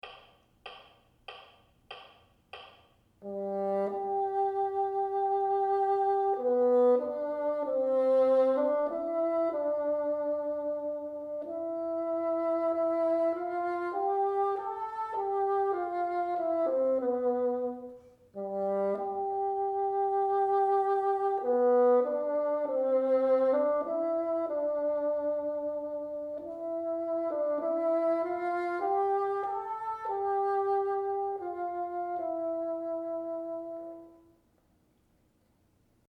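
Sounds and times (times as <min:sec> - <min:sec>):
bassoon: 0:03.2 - 0:34.4.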